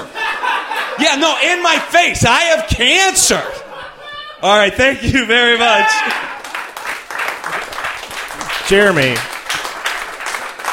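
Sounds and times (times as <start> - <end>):
laughter: 0.0 - 2.0, 3.0 - 5.2
speech: 1.0 - 3.6, 4.4 - 6.3, 8.7 - 9.3
person shouting: 5.6 - 6.4
audience clapping: 6.0 - 10.7.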